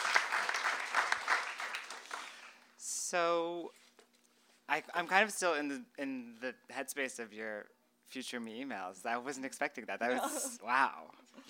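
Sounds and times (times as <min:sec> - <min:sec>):
audience clapping: 0:00.0 - 0:02.7
speech: 0:03.1 - 0:03.8, 0:04.7 - 0:11.4.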